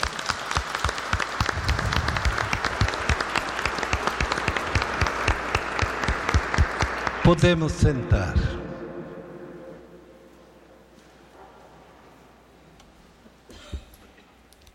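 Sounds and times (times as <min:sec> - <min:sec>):
audience applauding: 0:00.0 - 0:07.9
speech: 0:07.3 - 0:08.6.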